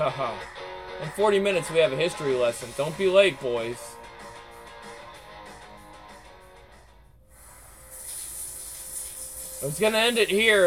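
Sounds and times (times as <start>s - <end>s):
speech: 0.0s - 4.0s, 9.6s - 10.6s
shower running water: 7.3s - 10.6s.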